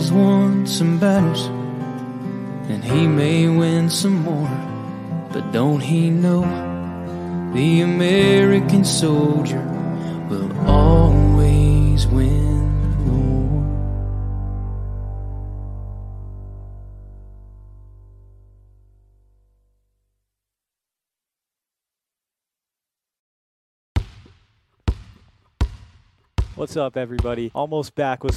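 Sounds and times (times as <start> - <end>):
speech: 0.1 - 1.6, 2.7 - 4.7, 5.3 - 6.7, 7.5 - 13.2, 26.6 - 28.3
long low tone: 10.3 - 19.4
basketball bouncing during a shootaround: 24.0 - 28.3.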